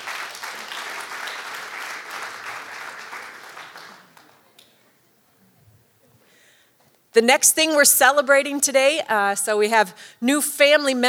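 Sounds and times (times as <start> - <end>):
audience applause: 0.0 - 4.7
speech: 7.1 - 11.0.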